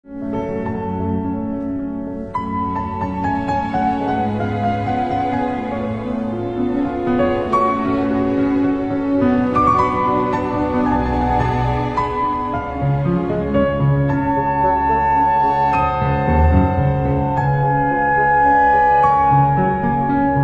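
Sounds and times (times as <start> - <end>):
piano concerto adagio: 0.0 - 20.4.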